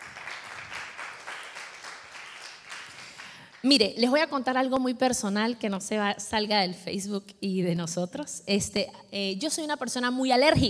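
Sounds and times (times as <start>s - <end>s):
audience applause: 0.0s - 3.4s
speech: 3.6s - 10.6s.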